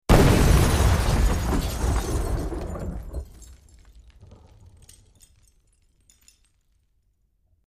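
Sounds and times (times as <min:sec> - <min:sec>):
explosion: 0:00.1 - 0:04.8
glass debris: 0:00.1 - 0:07.2.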